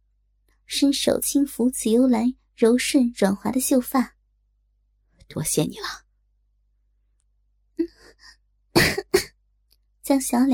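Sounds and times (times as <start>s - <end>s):
speech: 0.7s - 4.2s, 5.3s - 6.0s, 10.1s - 10.5s
woman coughing lightly with a slightly hoarse voice: 8.8s - 9.4s.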